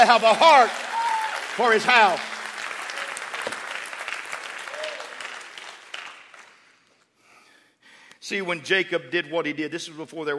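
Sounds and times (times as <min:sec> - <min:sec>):
speech: 0:00.0 - 0:00.9, 0:01.6 - 0:02.3, 0:08.2 - 0:10.3
audience clapping: 0:00.0 - 0:07.1.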